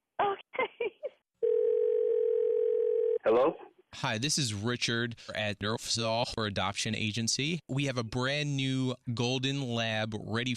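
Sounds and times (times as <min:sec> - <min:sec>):
telephone dial tone: 0:01.4 - 0:03.2
speech: 0:03.3 - 0:10.5.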